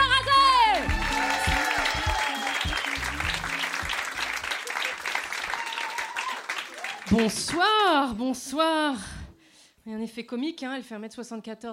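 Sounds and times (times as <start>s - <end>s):
audience applause: 0.4s - 7.7s
speech: 7.2s - 9.2s, 9.8s - 11.7s.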